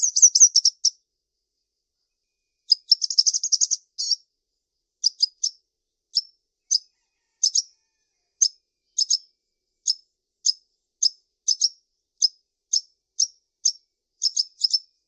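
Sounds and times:
brown-throated sunbird repeating a high sharp chip: 0.0s - 1.0s, 2.7s - 4.2s, 5.0s - 7.7s, 9.0s - 14.9s.

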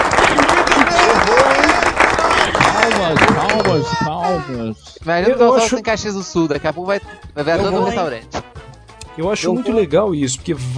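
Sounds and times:
applause: 0.0s - 4.0s
speech: 3.1s - 8.5s, 9.2s - 10.7s.

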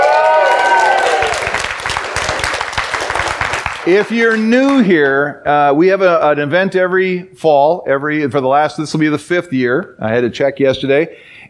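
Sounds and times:
audience cheering and applause: 0.0s - 4.8s
speech: 3.9s - 11.4s.

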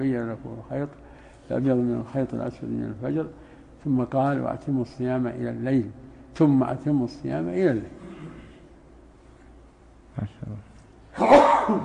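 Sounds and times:
speech: 0.0s - 8.0s, 11.2s - 11.8s
person sneezing: 11.1s - 11.8s.

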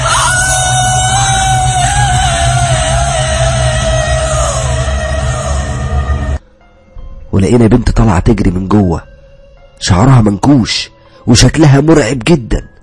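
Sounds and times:
woman letting out a long piercing scream: 0.0s - 6.4s
speech: 7.4s - 9.1s, 9.8s - 12.7s.

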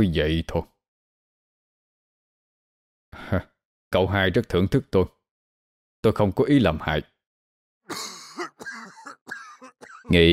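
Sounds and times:
speech: 0.0s - 0.7s, 3.2s - 5.2s, 6.0s - 7.1s, 7.9s - 9.4s, 10.1s - 10.3s
harsh coughs: 7.9s - 10.2s.

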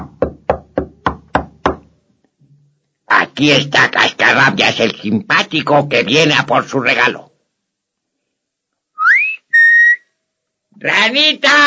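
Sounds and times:
knocking on the wooden door of a house: 0.0s - 1.9s
speech: 3.4s - 7.3s, 10.8s - 11.6s.

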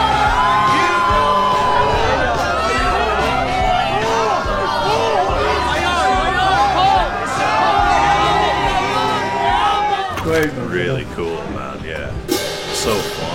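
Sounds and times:
crowd at a small live gig cheering and whooping: 0.0s - 10.2s
loud lively crowd chatter and overlapping shouts: 0.0s - 13.3s.

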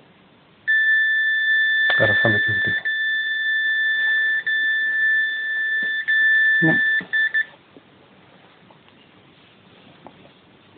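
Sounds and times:
long electronic beep: 0.7s - 7.5s
speech: 2.0s - 2.9s, 6.6s - 6.9s.

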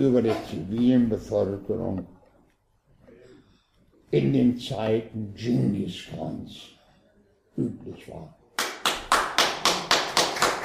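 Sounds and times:
speech: 0.0s - 2.2s, 4.1s - 6.8s, 7.6s - 8.4s
audience clapping in a steady rhythm: 8.6s - 10.6s.

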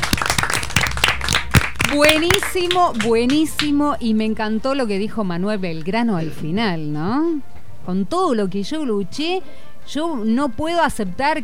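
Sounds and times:
applause: 0.0s - 3.8s
speech: 1.9s - 11.4s.

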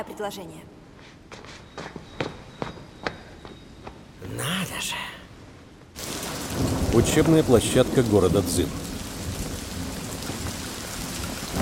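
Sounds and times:
speech: 0.0s - 1.5s, 4.2s - 5.2s, 7.0s - 8.8s
heavy rain on an overcast day over a training ground in the city of Jing: 6.0s - 11.6s.

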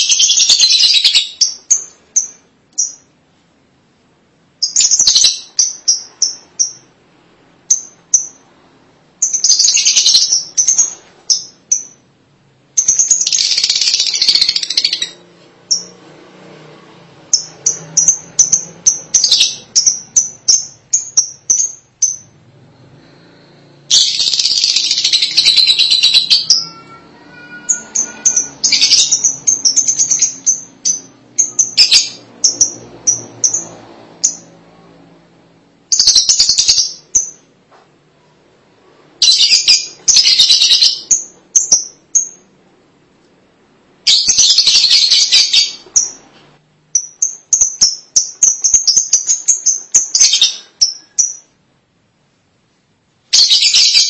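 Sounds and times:
lovebird chirps and chatter: 0.0s - 3.1s, 4.6s - 6.9s, 9.2s - 12.0s, 12.8s - 15.9s, 17.3s - 22.3s, 23.9s - 34.6s, 35.9s - 37.5s, 39.2s - 42.4s, 44.1s - 46.3s, 47.0s - 51.5s, 53.3s - 54.0s.

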